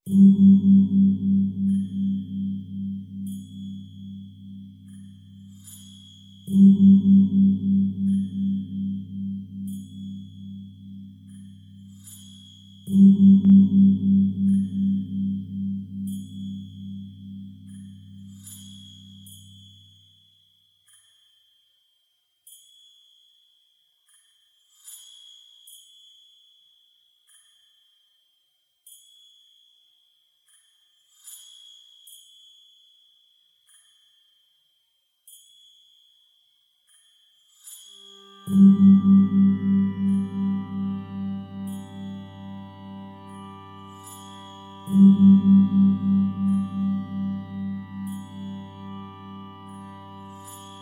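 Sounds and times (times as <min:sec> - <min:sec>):
percussion: 0:00.0 - 0:50.8.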